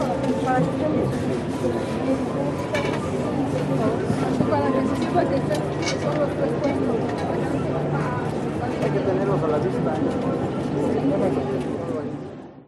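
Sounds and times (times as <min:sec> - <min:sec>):
market ambience in Mexico: 0:00.0 - 0:12.6.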